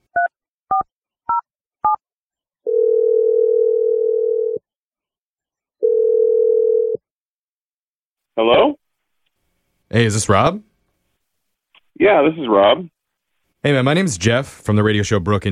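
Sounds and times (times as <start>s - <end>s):
long steady loud telephone call tones: 2.6s - 4.6s, 5.8s - 7.0s
speech: 8.4s - 8.8s, 10.0s - 10.7s, 12.0s - 12.9s, 13.6s - 15.4s.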